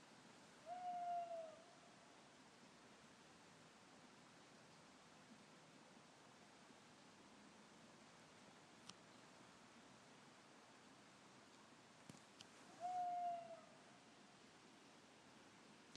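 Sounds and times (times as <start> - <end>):
owl: 0.6 - 1.8, 12.7 - 13.9.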